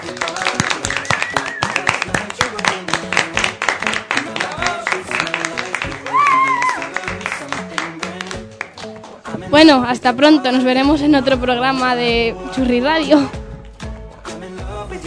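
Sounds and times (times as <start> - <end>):
applause, people clapping: 0.0 - 9.4
speech: 9.6 - 13.4.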